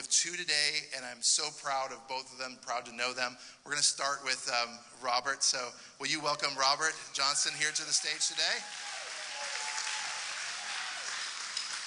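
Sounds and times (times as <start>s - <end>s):
speech: 0.2s - 8.9s
faint cheers: 7.5s - 11.8s
crowd applauding: 7.7s - 11.8s.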